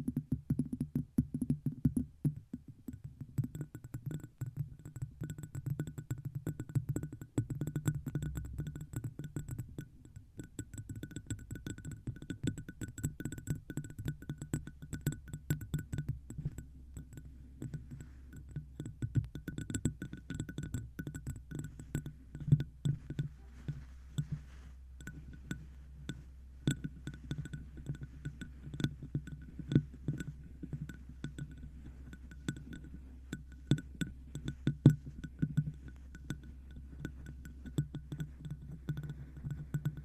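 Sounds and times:
objects tapped on a microphone: 0:00.0 - 0:40.0
steady low hum: 0:16.4 - 0:39.9.

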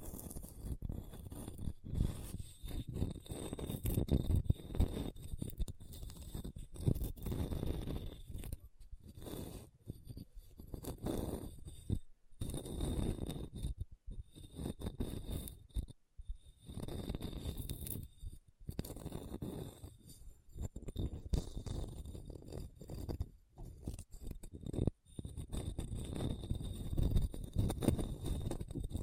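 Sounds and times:
scratching over a hard, bumpy surface: 0:00.0 - 0:29.0.

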